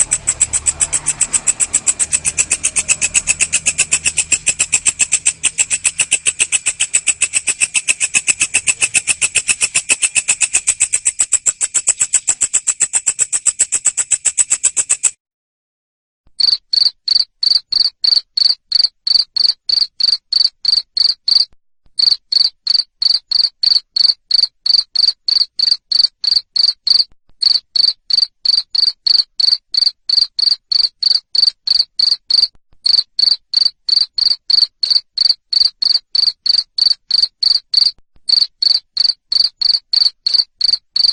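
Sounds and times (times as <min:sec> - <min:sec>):
cricket chirping: 0:00.0 - 0:15.2, 0:16.4 - 0:41.1.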